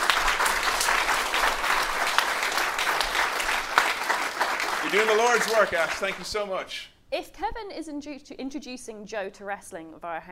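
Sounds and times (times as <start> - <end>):
crowd applauding: 0.0 - 6.6
speech: 4.9 - 10.2.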